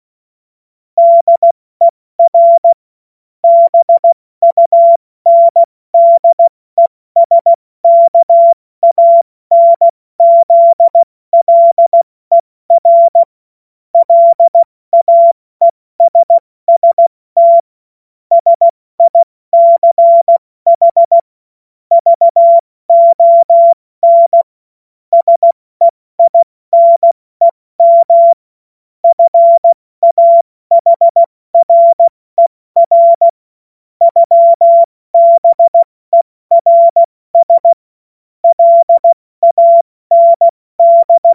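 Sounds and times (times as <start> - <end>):
CW Morse code beeps: 1.0 - 1.6, 2.2 - 2.8, 3.4 - 13.3, 14.0 - 17.7, 18.3 - 21.3, 21.9 - 24.5, 25.1 - 28.4, 29.0 - 33.4, 34.0 - 37.8, 38.4 - 41.3.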